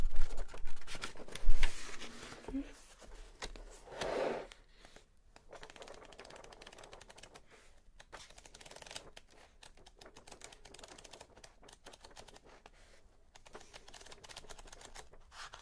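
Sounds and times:
pages rustling and turning: 0:00.0 - 0:15.6.

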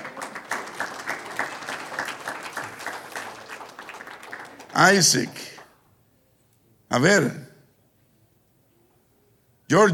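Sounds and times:
audience applause: 0:00.0 - 0:05.7
speech: 0:04.8 - 0:05.6, 0:06.9 - 0:07.5, 0:09.7 - 0:09.9.

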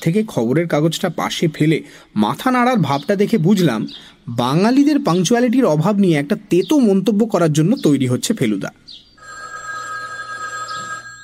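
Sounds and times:
speech: 0:00.0 - 0:09.0
telephone ringing with a high electronic tone: 0:09.2 - 0:11.2.

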